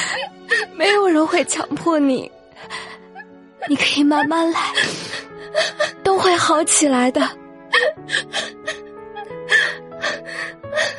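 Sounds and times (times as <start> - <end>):
crying fading into sobs: 0.0 - 1.2, 2.6 - 6.5, 7.7 - 10.9
speech: 0.8 - 2.8, 3.6 - 7.4.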